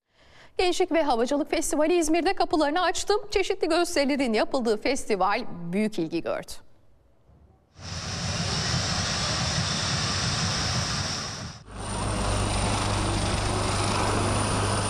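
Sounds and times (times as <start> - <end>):
speech: 0.6 - 6.7
military jets roaring at an aviation festival in İzmir: 7.8 - 14.8.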